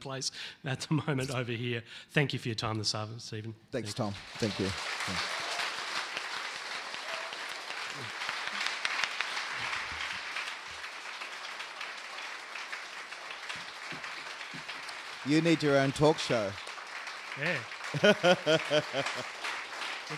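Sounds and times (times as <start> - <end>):
speech: 0.0 - 5.5, 15.3 - 16.6, 17.4 - 19.4
audience applause: 4.0 - 20.1
laughter: 17.4 - 19.5.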